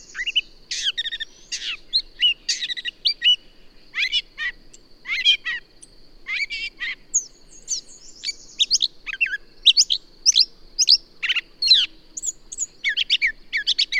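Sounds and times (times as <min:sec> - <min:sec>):
bird song: 0:00.0 - 0:13.9.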